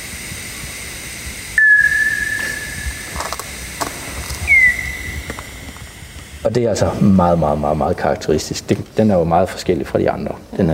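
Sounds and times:
bat calls through a bat detector: 1.6 - 5.7
soft ticks and hiss: 1.9 - 6.6, 7.6 - 10.7
speech: 6.5 - 10.7.

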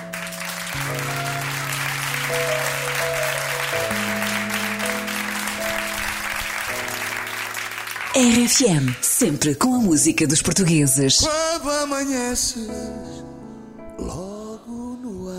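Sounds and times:
audience applause: 0.0 - 9.6
speech: 8.2 - 13.3, 14.0 - 14.2.

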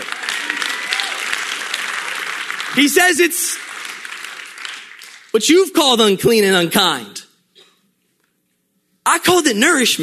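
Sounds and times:
crowd clapping: 0.0 - 5.7
speech: 2.8 - 3.7, 5.3 - 7.2, 9.0 - 10.0.

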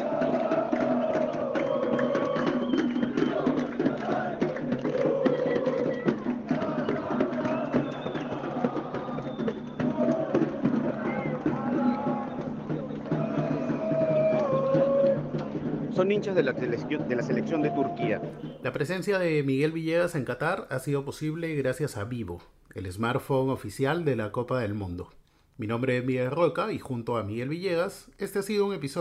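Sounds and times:
brief street parade of football fans: 0.0 - 18.6
speech: 16.0 - 28.9.

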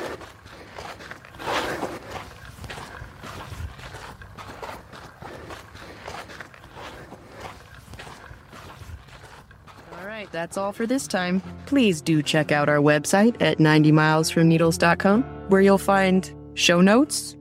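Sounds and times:
footsteps of people walking back: 0.0 - 12.8
speech: 10.3 - 17.3.

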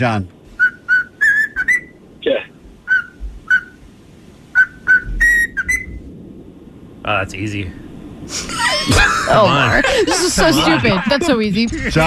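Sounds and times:
speech: 0.0 - 0.4, 7.1 - 12.0
low hum: 0.0 - 12.0
cockatoo whistling: 0.5 - 2.0, 2.8 - 3.8, 4.5 - 6.0
harsh raspy cockatoo squawk: 0.6 - 3.8, 4.6 - 6.0
laughter: 8.3 - 12.0.

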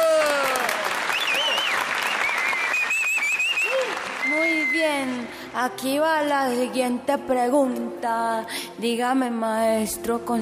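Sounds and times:
audience applause: 0.0 - 5.4
speech: 4.8 - 10.4.

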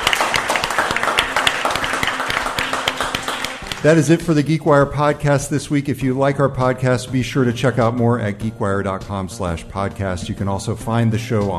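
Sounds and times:
audience applause: 0.0 - 4.3
speech: 3.8 - 11.5.

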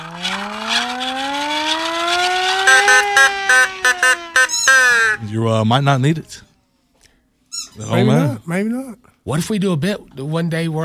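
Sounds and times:
siren wailing and blasting: 0.0 - 5.3
speech: 5.3 - 6.5, 7.8 - 10.8.

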